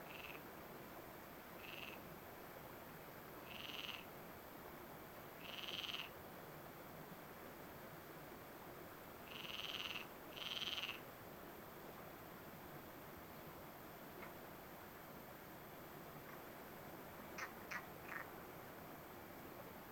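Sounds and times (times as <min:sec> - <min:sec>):
frogs buzzy croaks: 0:00.0 - 0:00.5, 0:01.6 - 0:02.0, 0:03.4 - 0:04.1, 0:05.4 - 0:06.2, 0:09.2 - 0:11.1, 0:17.3 - 0:18.4
constant low hiss: 0:00.0 - 0:19.9.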